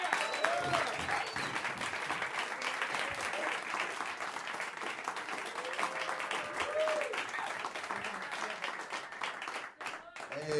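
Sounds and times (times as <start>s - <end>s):
faint cheers and whoops: 0.0s - 1.6s, 5.5s - 7.5s
audience applause: 0.0s - 10.5s.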